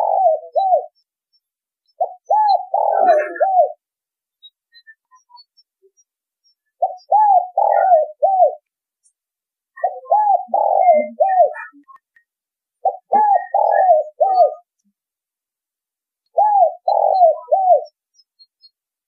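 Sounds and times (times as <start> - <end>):
spotted dove cooing: 0.0 - 1.0, 2.0 - 3.8, 6.8 - 8.6, 9.8 - 11.8, 12.8 - 14.6, 16.4 - 18.0.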